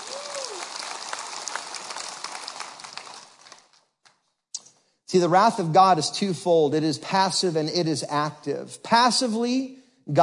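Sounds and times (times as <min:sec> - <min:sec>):
crowd applauding: 0:00.0 - 0:03.9
speech: 0:05.1 - 0:10.2.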